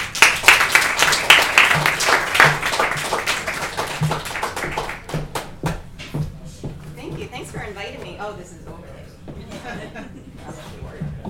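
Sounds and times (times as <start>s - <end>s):
audience applause: 0.0s - 5.8s
laughter: 9.4s - 10.9s.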